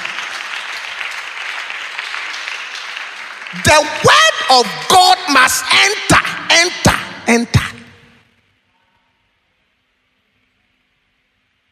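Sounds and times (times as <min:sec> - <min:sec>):
crowd clapping: 0:00.0 - 0:06.4
speech: 0:03.5 - 0:07.7.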